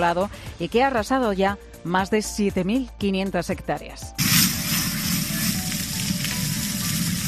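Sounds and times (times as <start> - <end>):
speech: 0.0 - 4.3
large fire burning through vegetation crackling and hissing: 4.2 - 7.2.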